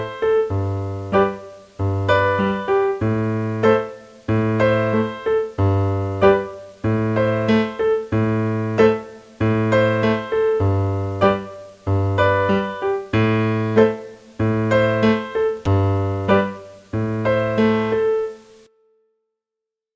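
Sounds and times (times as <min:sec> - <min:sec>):
piano playing Am and G chords: 0:00.0 - 0:18.7.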